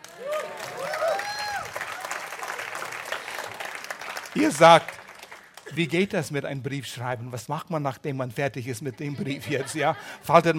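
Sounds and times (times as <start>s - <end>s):
audience applause: 0.0s - 6.2s
speech: 4.4s - 5.0s, 5.7s - 10.5s
laughter: 9.0s - 10.5s.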